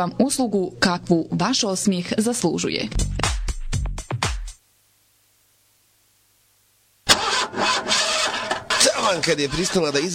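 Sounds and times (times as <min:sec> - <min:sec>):
speech: 0:00.0 - 0:03.3, 0:09.1 - 0:10.1
car engine cranking and failing to start: 0:07.1 - 0:10.1.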